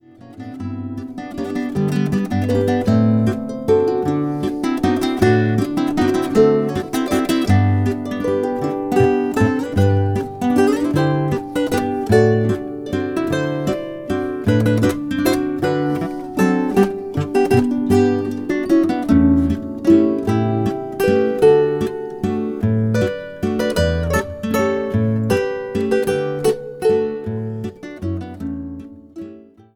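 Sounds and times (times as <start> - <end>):
waltz music: 0.4 - 29.6.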